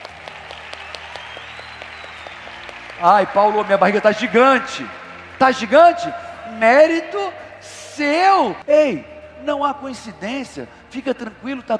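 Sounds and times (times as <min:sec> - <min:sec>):
hands clapping: 0:00.0 - 0:06.3
speech: 0:03.0 - 0:11.7.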